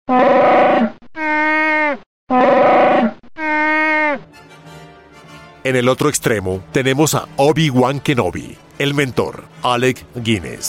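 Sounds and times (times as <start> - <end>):
creature roar blended from bear, walrus and lion: 0.1 - 4.2
speech: 5.6 - 10.6.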